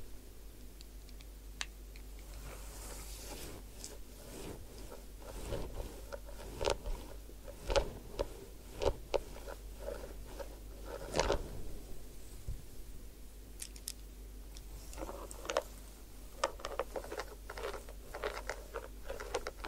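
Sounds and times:
low steady hum: 0:00.0 - 0:19.6
sharp clicks and brushing strokes: 0:02.0 - 0:12.9, 0:14.6 - 0:19.6
head spa hair wash and massage scratching and rubbing: 0:02.4 - 0:12.0, 0:16.4 - 0:19.6.

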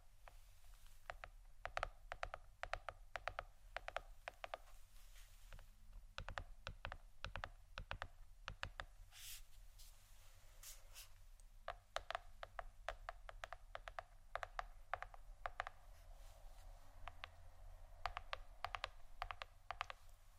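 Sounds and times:
sharp bright tapping clicks: 0:01.0 - 0:04.7, 0:05.9 - 0:08.9, 0:11.7 - 0:15.8, 0:17.0 - 0:20.3.

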